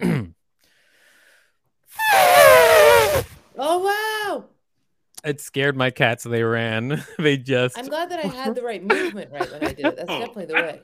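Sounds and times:
person imitating an elephant trumpeting: 2.0 - 3.4
speech: 5.2 - 10.8
laughter: 8.0 - 10.8.

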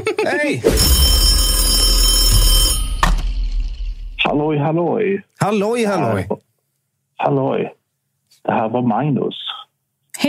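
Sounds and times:
speech: 0.2 - 1.0, 4.3 - 6.5, 7.2 - 7.8, 8.4 - 9.5
telephone ringing for an incoming call to a live call-in show: 0.7 - 4.0.

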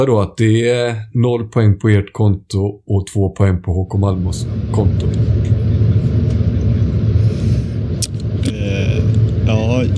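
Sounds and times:
speech: 0.0 - 5.4, 9.5 - 9.9
bus engine rumble during ride: 3.8 - 9.9.

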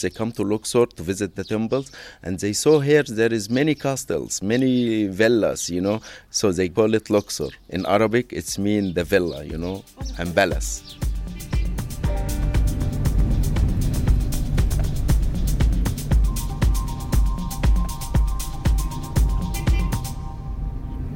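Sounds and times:
speech: 0.0 - 11.1
car driving inland on a road in Luxor, Egypt: 11.2 - 21.1.

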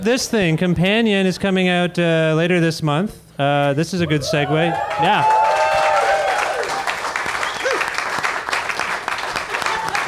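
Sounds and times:
speech: 0.0 - 5.6
whoops: 4.3 - 8.0
studio audience applause: 4.4 - 10.0.

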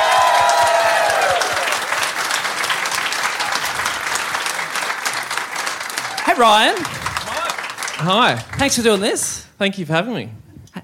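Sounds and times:
cheers and whoops: 0.0 - 2.0, 6.0 - 6.4
audience applause welcoming a guest: 0.0 - 9.3
speech: 6.4 - 7.0, 8.0 - 10.4.

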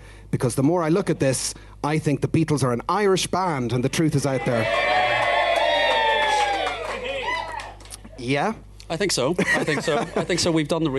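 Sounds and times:
speech: 0.4 - 5.0, 8.2 - 10.9
crowd cheering and shouting: 4.2 - 8.0
laughter: 9.4 - 10.9.

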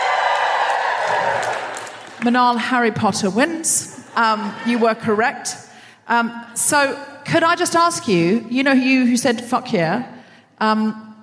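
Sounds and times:
audience cheering: 0.0 - 2.2
speech: 2.2 - 11.0.

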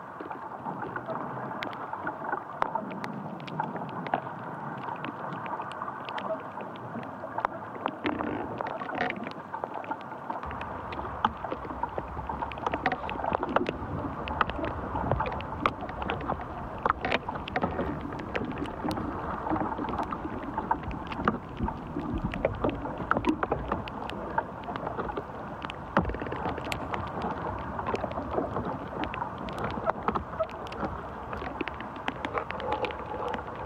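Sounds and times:
branches clicking and creaking: 0.3 - 33.6
tree branches moving in wind: 10.4 - 33.6.

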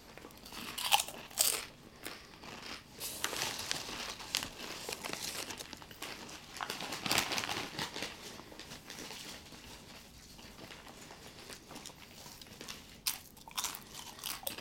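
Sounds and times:
chip bag crinkled and rustled: 0.0 - 14.5.

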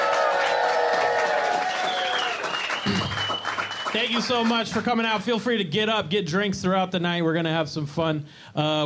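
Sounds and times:
live crowd cheering and whooping: 0.0 - 3.8
live crowd applause: 0.0 - 5.2
speech: 4.0 - 8.8.

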